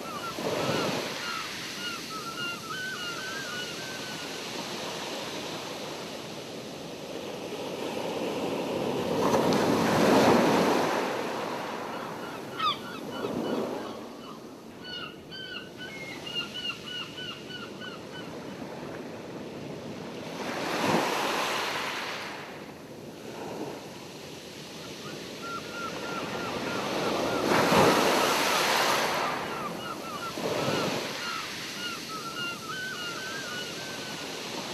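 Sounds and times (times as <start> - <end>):
seagulls: 0.0 - 4.3, 11.9 - 18.3, 25.0 - 34.3
ocean: 0.0 - 34.7.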